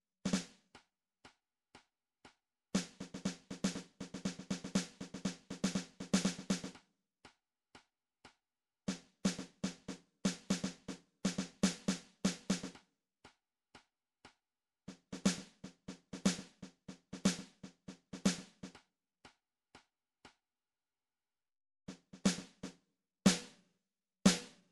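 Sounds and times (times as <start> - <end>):
snare drum: 0.3 - 0.6, 2.8 - 6.8, 8.9 - 12.8, 14.9 - 18.8, 21.9 - 23.6, 24.3 - 24.6.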